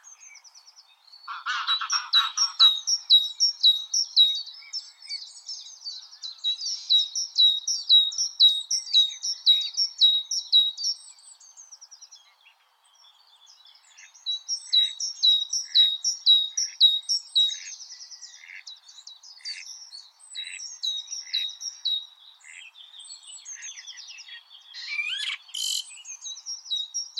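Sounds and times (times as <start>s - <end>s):
Great tit Parus major song of ringing two-note phrases: 0.0s - 11.0s, 13.4s - 27.1s.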